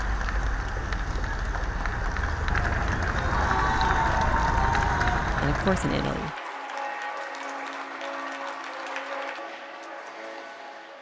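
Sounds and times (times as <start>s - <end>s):
residents applauding from balconies: 0.0s - 11.0s
speech: 5.6s - 6.4s.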